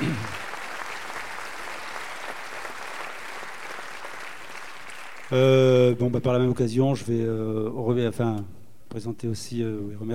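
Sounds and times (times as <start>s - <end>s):
crowd applauding: 0.0s - 5.6s
speech: 5.3s - 10.1s.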